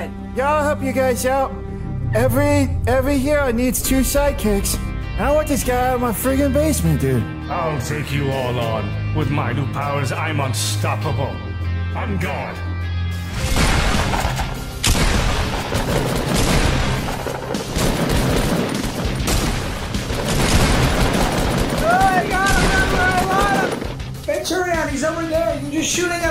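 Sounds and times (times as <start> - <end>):
speech: 0.0 - 12.7, 25.3 - 26.2
heavy booms in Fortnite: 1.9 - 6.1, 13.3 - 24.4
gunfire in the video game Fortnite: 13.5 - 24.2
excited players talking over Fortnite gunfire: 21.8 - 26.2.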